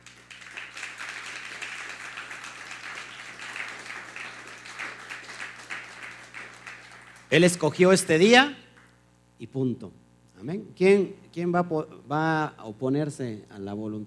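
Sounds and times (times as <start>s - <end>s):
audience applause: 0.0s - 7.7s
speech: 7.3s - 8.6s, 9.4s - 14.0s.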